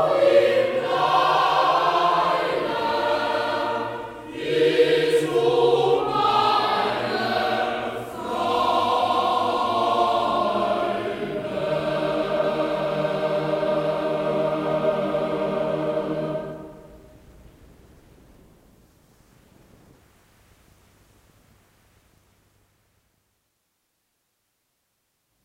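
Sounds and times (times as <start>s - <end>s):
choir singing: 0.0s - 17.2s.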